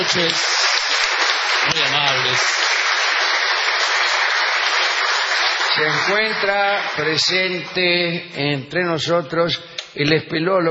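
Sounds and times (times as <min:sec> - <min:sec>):
speech: 0:00.0 - 0:00.6, 0:01.6 - 0:02.7, 0:05.8 - 0:10.6
audience applause honouring a guest at an evening gathering: 0:00.0 - 0:07.6.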